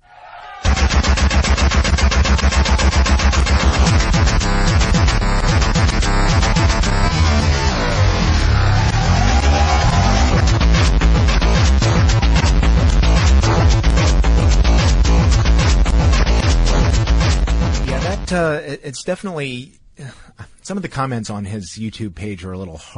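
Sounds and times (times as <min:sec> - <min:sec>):
loud live electronica-industrial noise music performance: 0:00.6 - 0:18.5
speech: 0:18.9 - 0:22.9.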